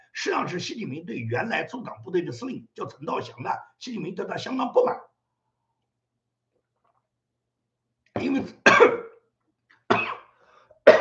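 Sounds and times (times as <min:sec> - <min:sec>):
speech: 0:00.2 - 0:05.1, 0:08.2 - 0:09.0
man coughing after choking: 0:08.2 - 0:09.2, 0:09.9 - 0:10.3.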